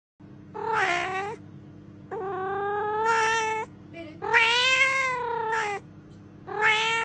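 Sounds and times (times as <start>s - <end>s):
low steady hum: 0.2s - 7.0s
cat meowing: 0.6s - 1.4s, 2.1s - 5.8s, 6.5s - 7.0s.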